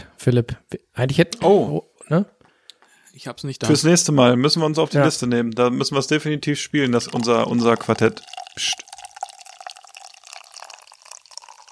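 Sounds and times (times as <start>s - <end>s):
speech: 0.2s - 2.4s, 3.2s - 8.9s
beer pouring into a glass: 6.8s - 11.7s.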